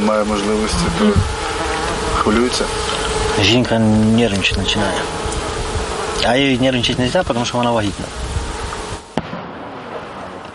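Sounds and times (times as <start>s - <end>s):
drones over positions: 0.0s - 10.5s
speech: 0.1s - 1.6s, 2.2s - 5.2s, 6.2s - 8.3s
powerful artillery cannonade: 9.2s - 10.5s.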